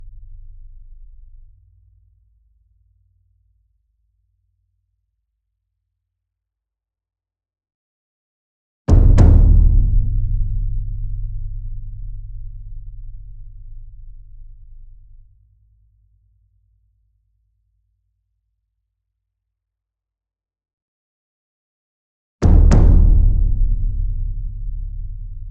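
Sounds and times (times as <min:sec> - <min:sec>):
large double concert bass drum: 0:08.9 - 0:15.2, 0:22.4 - 0:25.4.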